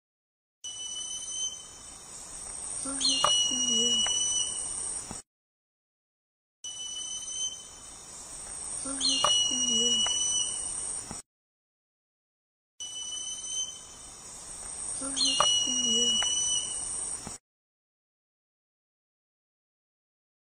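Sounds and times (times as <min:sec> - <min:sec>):
uiracu falto singing: 0:00.6 - 0:02.0, 0:02.8 - 0:04.7, 0:06.7 - 0:08.0, 0:08.8 - 0:10.8, 0:12.8 - 0:14.1, 0:15.0 - 0:16.9.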